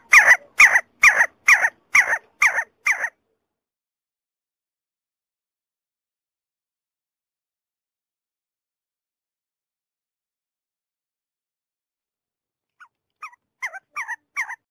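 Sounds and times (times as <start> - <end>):
see-see partridge calling: 0.0 - 3.2, 12.8 - 14.6.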